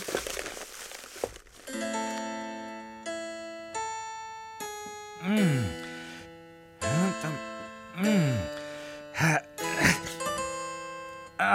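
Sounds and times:
rummaging through a box: 0.0 - 2.3
organ-like chords: 1.7 - 11.5.

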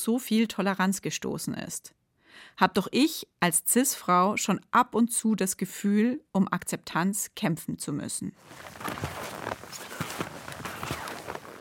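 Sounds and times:
speech: 0.0 - 9.8
footsteps walking through snow to the abandoned Gori-Alm: 8.4 - 11.5.

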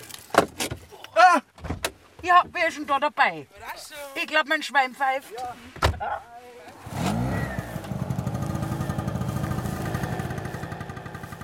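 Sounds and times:
speech: 2.2 - 7.1
generator running: 7.1 - 11.4.

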